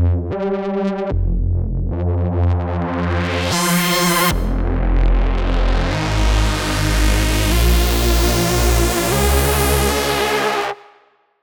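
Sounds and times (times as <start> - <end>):
hard techno with Reese bass: 0.2 - 10.8.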